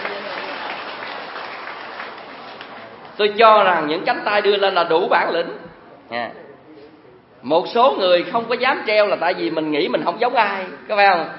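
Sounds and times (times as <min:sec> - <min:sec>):
audience applause at a village gathering: 0:00.0 - 0:03.2
speech: 0:03.2 - 0:06.4, 0:07.4 - 0:11.3.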